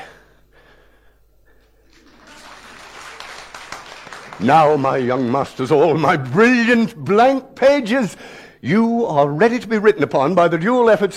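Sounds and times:
audience applause: 1.9 - 6.0
speech: 4.4 - 11.1.

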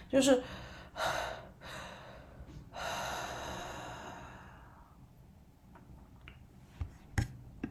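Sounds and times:
speech: 0.1 - 1.2
heavy gasping breaths: 0.4 - 4.9.

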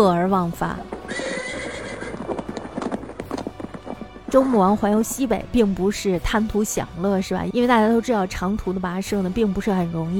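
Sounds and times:
speech: 0.0 - 1.3, 4.3 - 10.1
hooves of eight horses drawing a chariot: 0.4 - 6.5
horse whinnying: 1.0 - 4.8.

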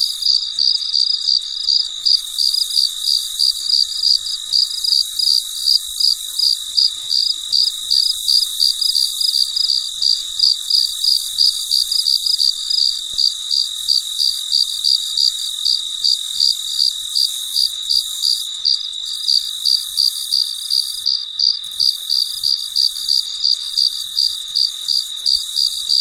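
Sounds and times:
cricket chirping: 0.0 - 25.9.

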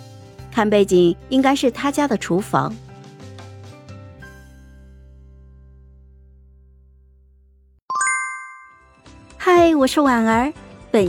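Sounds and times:
speech: 0.6 - 2.9, 9.7 - 11.0
WeChat message notification chime: 7.9 - 9.0.

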